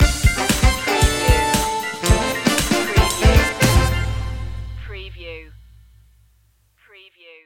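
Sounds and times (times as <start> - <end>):
funky stinger: 0.4 - 6.0.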